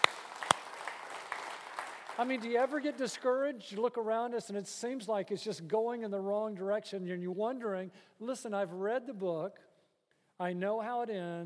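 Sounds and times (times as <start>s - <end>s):
sparse audience hand claps: 0.0s - 2.2s
speech: 2.2s - 9.7s, 10.4s - 11.4s.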